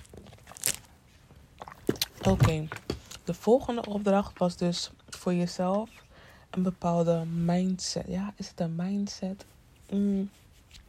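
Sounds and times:
person taking a sip of water: 1.4s - 2.2s
speech: 2.2s - 6.0s, 6.6s - 10.4s.

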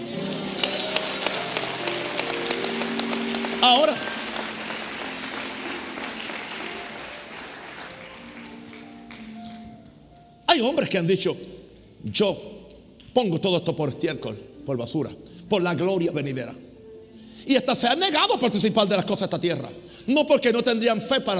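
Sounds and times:
audience applauding: 0.0s - 9.8s
speech: 3.6s - 4.1s, 10.6s - 12.6s, 13.2s - 16.6s, 17.4s - 21.3s.

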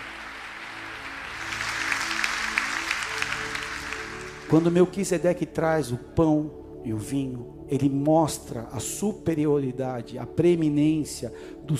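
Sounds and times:
audience applause: 0.0s - 4.8s
speech: 4.5s - 11.7s.

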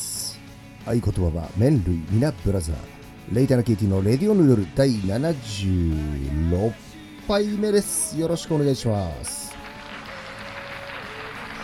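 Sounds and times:
speech: 0.8s - 9.5s
applause: 9.1s - 11.6s.

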